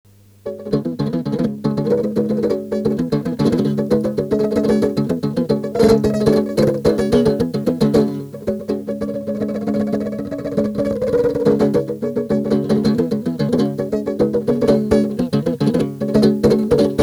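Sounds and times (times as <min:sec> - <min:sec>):
guitar: 0:00.1 - 0:17.0.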